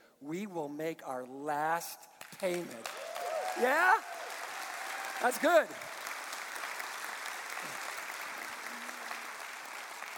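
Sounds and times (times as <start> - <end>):
speech: 0.2 - 3.0, 3.6 - 4.2, 5.2 - 5.9
crowd applauding: 2.5 - 10.1.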